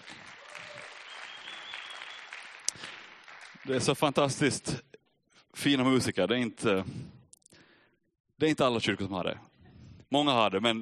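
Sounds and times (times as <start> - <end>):
applause for the musicians in a church: 0.0 - 4.4
speech: 3.6 - 4.9, 5.6 - 7.1, 8.4 - 9.5, 10.1 - 10.8.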